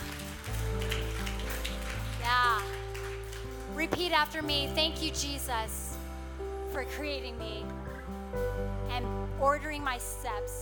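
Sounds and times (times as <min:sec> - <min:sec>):
audience clapping: 0:00.0 - 0:04.4
speech: 0:03.9 - 0:05.8, 0:06.8 - 0:10.5.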